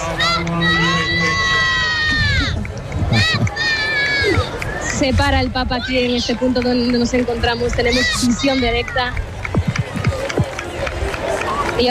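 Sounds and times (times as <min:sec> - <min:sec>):
crowd shouting: 0:00.0 - 0:05.0, 0:07.6 - 0:11.8
speech: 0:05.0 - 0:09.3.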